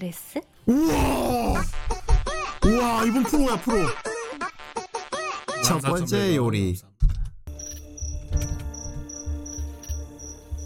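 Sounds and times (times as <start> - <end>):
speech: 0.0 - 1.7, 2.8 - 4.1, 5.7 - 6.9
laughter: 2.0 - 4.6
cricket chirping: 7.5 - 10.6.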